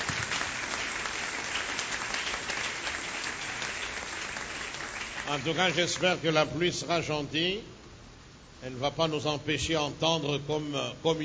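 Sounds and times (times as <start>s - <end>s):
crowd applauding: 0.0s - 6.2s
speech: 5.3s - 7.7s, 8.6s - 11.2s.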